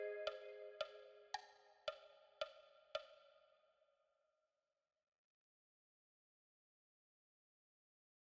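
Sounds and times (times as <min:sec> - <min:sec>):
vibraphone: 0:00.0 - 0:01.1.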